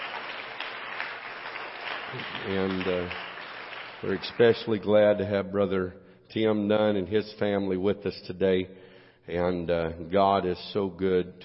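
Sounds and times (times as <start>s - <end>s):
audience hand clapping: 0.0s - 4.8s
speech: 2.1s - 3.3s, 4.0s - 11.4s.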